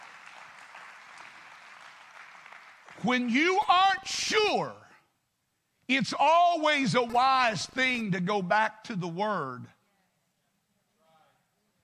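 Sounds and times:
crowd clapping: 0:00.0 - 0:03.8
speech: 0:03.0 - 0:04.8, 0:05.9 - 0:09.8.

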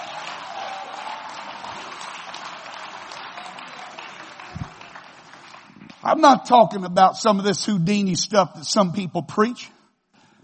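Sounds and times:
audience clapping hands: 0:00.0 - 0:07.0
speech: 0:06.0 - 0:09.8.

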